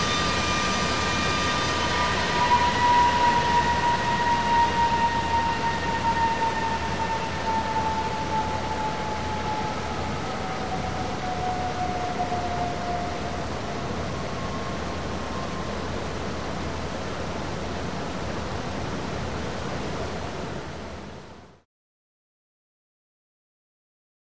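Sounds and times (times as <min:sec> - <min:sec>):
loud machine fan screech: 0:00.0 - 0:16.9
conveyor belt running: 0:00.0 - 0:21.1.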